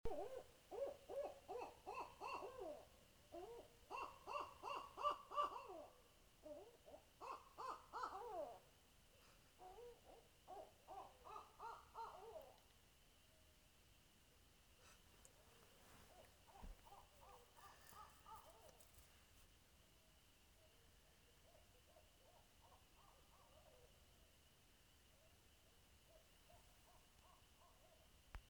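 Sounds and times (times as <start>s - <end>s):
owl: 0.1s - 8.7s, 9.6s - 12.7s, 16.0s - 18.9s, 21.5s - 23.9s.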